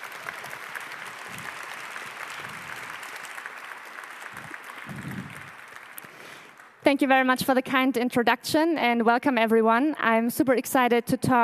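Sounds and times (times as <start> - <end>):
audience applause: 0.0 - 6.8
speech: 6.9 - 11.4.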